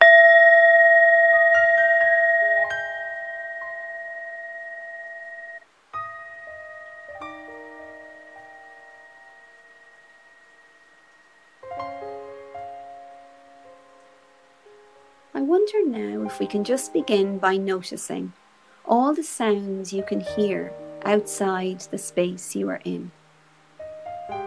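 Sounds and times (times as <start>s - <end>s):
singing bowl being struck: 0.0s - 13.2s
speech: 15.7s - 18.4s, 19.1s - 23.2s.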